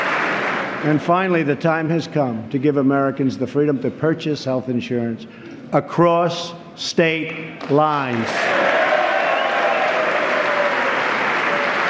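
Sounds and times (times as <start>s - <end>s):
rousing applause from Republican legislators: 0.0s - 1.0s, 8.0s - 11.8s
speech: 0.8s - 8.7s.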